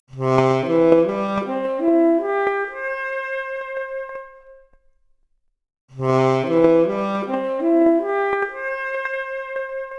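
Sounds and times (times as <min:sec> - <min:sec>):
noisy 4-bit saxophone arpeggio: 0:00.3 - 0:04.3, 0:06.0 - 0:09.9.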